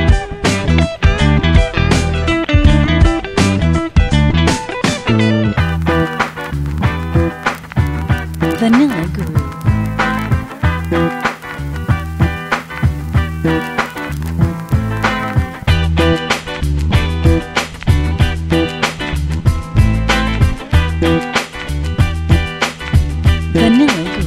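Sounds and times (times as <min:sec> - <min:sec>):
bass: 0:00.0 - 0:24.2
old school boom bap drum loops: 0:05.6 - 0:24.2.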